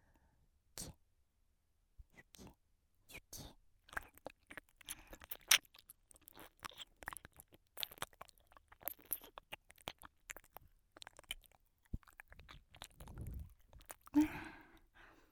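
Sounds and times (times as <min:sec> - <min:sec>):
licking sounds in the right ear: 0:03.9 - 0:15.0.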